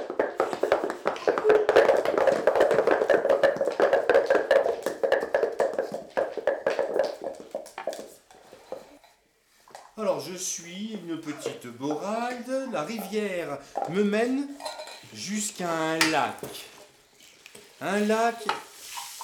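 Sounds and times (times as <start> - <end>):
horse hooves galloping: 0.0 - 9.0, 9.7 - 14.6
speech: 10.4 - 16.6, 17.8 - 18.6.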